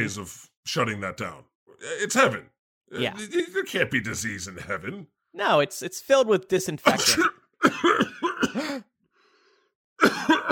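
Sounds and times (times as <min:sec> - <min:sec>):
speech: 0:00.0 - 0:08.9
person coughing after a hit from a bong: 0:06.9 - 0:08.9, 0:10.0 - 0:10.5.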